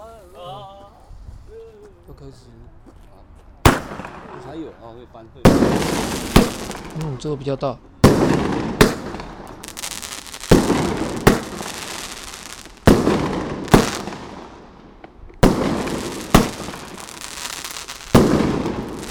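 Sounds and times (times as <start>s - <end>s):
speech: 2.1s - 2.9s, 4.4s - 8.7s
fireworks exploding: 3.6s - 4.8s, 5.4s - 19.0s.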